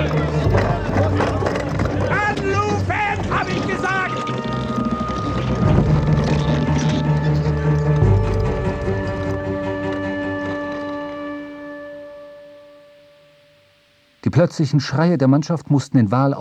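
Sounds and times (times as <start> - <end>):
irregular wooden knocking of boats being lowered: 0.0 - 11.4
sea water noise: 0.0 - 14.1
steady humming drone of boats being lowered from a ship into the sea: 0.0 - 14.2
speech: 14.4 - 16.4.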